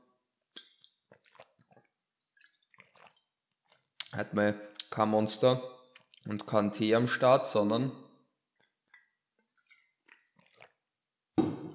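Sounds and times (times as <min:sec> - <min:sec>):
sipping Sprite Zero with lemon syrup: 0:00.5 - 0:04.2, 0:05.9 - 0:06.6, 0:08.6 - 0:10.9
speech: 0:04.2 - 0:08.0.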